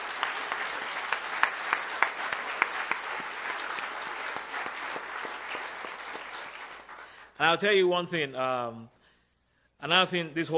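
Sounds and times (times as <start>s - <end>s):
audience applause: 0.0s - 7.3s
speech: 7.4s - 9.0s, 9.8s - 10.5s.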